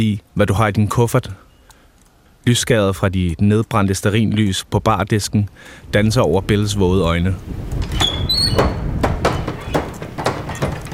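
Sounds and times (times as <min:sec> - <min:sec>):
speech: 0:00.0 - 0:01.5, 0:02.4 - 0:08.8
wind rumble: 0:05.8 - 0:10.9
squealing hinge of swinging saloon doors: 0:07.8 - 0:10.9.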